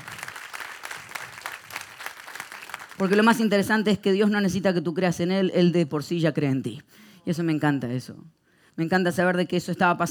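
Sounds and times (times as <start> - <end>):
audience applauding loudly: 0.0 - 3.4
speech: 3.0 - 10.0.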